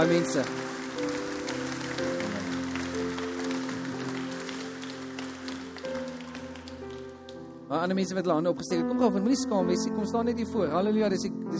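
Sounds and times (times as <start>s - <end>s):
speech: 0.0s - 0.8s, 7.7s - 11.5s
applause: 0.0s - 7.5s.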